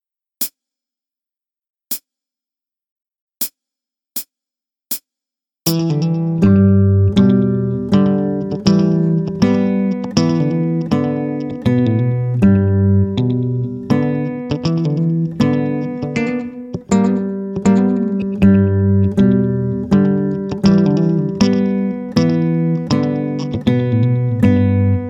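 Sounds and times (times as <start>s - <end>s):
guitar string change: 5.7s - 25.0s.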